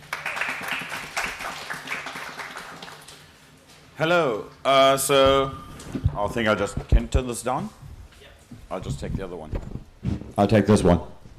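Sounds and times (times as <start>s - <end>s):
round of applause: 0.0s - 3.3s
speech: 4.0s - 5.6s, 6.2s - 7.8s, 8.7s - 9.8s, 10.4s - 11.2s.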